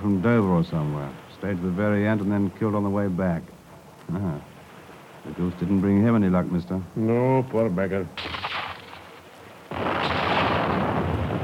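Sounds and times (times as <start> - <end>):
speech: 0.0 - 4.5, 5.2 - 8.4
sea mine exploding after gunfire: 9.7 - 11.4.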